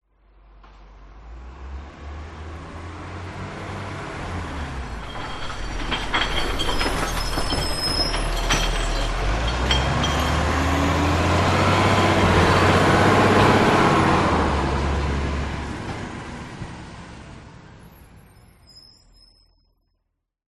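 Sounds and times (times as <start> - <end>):
garbage truck emptying a recycle bin on a residential street: 2.8 - 17.5.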